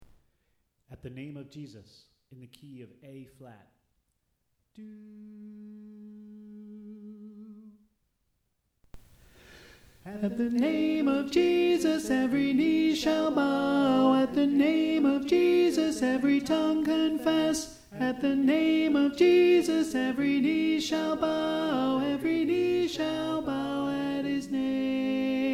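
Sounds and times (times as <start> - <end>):
tenor singing: 4.7 - 7.8, 10.0 - 25.5.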